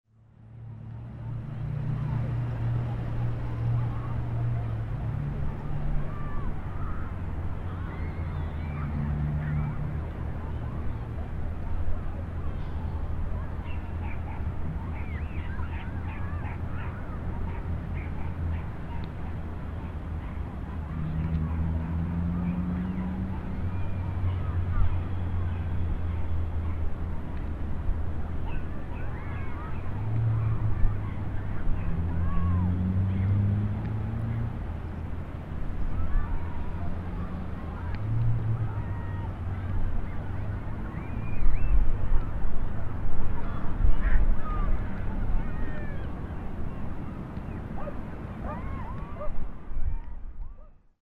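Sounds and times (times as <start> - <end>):
distant fun sounds from the seaside: 0.2 - 50.9.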